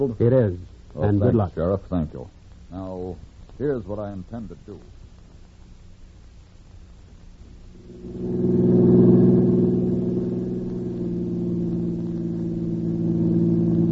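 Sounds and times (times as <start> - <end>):
speech: 0.0 - 5.0, 7.9 - 8.5
car engine driving: 7.7 - 13.9.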